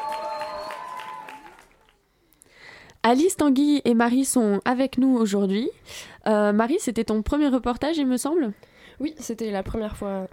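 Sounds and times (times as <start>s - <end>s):
audience applauding the musicians: 0.0s - 2.0s
speech: 3.0s - 10.3s.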